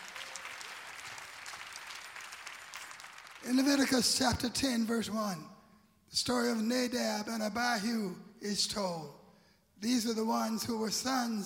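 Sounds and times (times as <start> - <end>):
audience clapping hands: 0.0 - 4.4
speech: 3.4 - 5.5, 6.1 - 9.2, 9.8 - 11.4.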